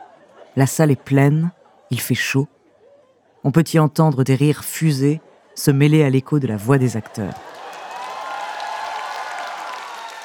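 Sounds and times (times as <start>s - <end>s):
speech: 0.6s - 2.6s, 3.4s - 7.5s
theatre audience applause: 7.0s - 10.2s.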